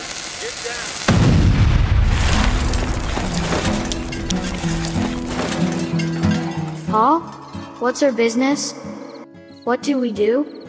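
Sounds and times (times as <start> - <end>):
blast explosion in a bootleg coal mine: 1.1 - 6.2
speech: 6.9 - 9.0, 9.6 - 10.6.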